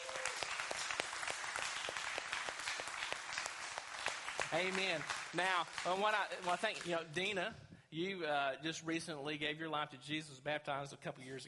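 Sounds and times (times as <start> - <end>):
audience applause: 0.0 - 7.4
speech: 4.5 - 11.4.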